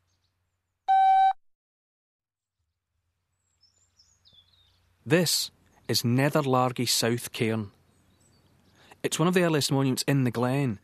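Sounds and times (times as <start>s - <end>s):
electronic beep: 0.9s - 1.4s
speech: 5.1s - 7.8s, 9.0s - 10.8s.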